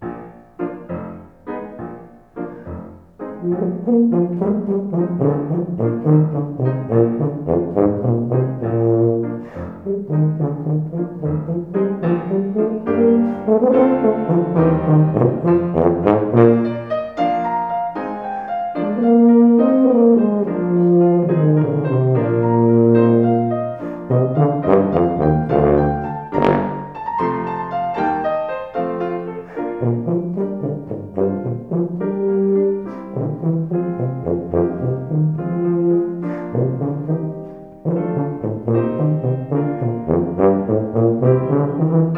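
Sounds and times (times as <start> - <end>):
piano: 0.0 - 42.1
tuba: 0.0 - 42.1.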